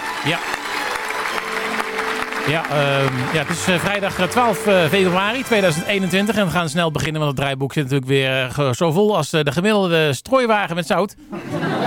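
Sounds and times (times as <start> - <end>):
applause sound effect: 0.0 - 6.8
speech: 0.2 - 0.6, 2.4 - 11.8
laughter: 11.2 - 11.8.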